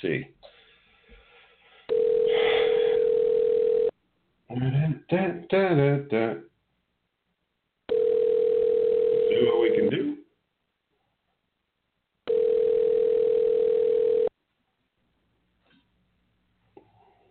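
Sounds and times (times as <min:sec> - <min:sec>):
speech: 0:00.0 - 0:00.4, 0:04.5 - 0:06.5
telephone dial tone while placing call: 0:01.9 - 0:03.9, 0:07.9 - 0:09.9, 0:12.3 - 0:14.3.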